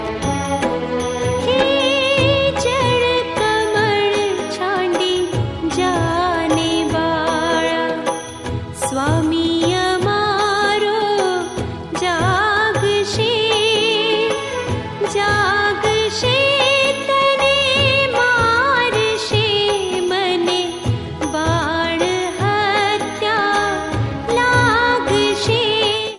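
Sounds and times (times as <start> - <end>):
devotional bhakti music: 0.0 - 26.1.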